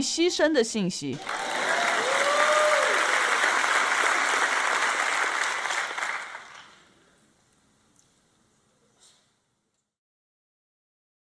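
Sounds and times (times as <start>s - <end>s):
speech: 0.0s - 1.6s
audience applause: 1.2s - 6.9s.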